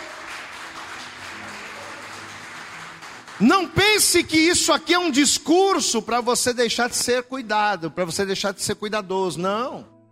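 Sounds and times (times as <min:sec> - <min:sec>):
audience applauding: 0:00.0 - 0:04.6
speech: 0:03.4 - 0:09.9.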